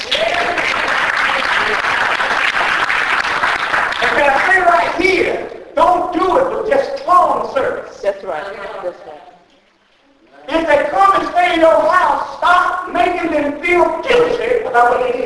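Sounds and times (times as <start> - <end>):
people talking: 0.0 - 2.4, 4.0 - 9.5, 10.2 - 15.2
church congregation clapping during a sermon: 0.0 - 5.5.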